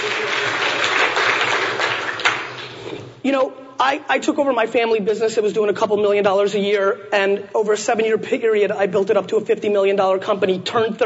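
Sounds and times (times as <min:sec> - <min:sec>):
audience applause: 0:00.0 - 0:02.9
speech: 0:03.2 - 0:11.0.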